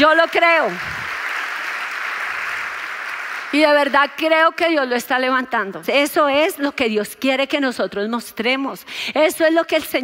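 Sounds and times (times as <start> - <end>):
speech: 0.0 - 1.0, 3.5 - 10.0
crowd clapping: 0.0 - 4.2.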